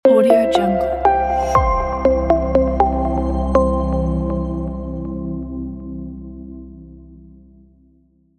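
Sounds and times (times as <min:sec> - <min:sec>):
modern logo intro jingle: 0:00.0 - 0:05.7.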